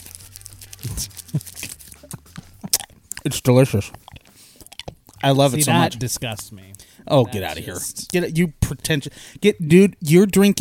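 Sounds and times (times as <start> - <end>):
packet of black currant licorice from Wales crinkling and tearing: 0.0 - 3.3
speech: 1.0 - 1.5, 3.2 - 4.0, 5.2 - 10.5.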